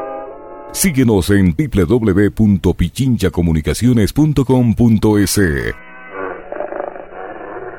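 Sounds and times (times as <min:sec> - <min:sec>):
speech: 0:00.8 - 0:05.8
wolves growling: 0:06.1 - 0:07.7.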